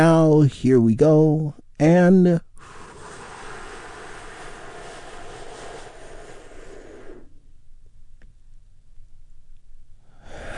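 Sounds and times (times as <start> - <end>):
speech: 0.0 - 2.8
deep breath during a relaxation exercise: 2.5 - 7.6, 10.0 - 10.5.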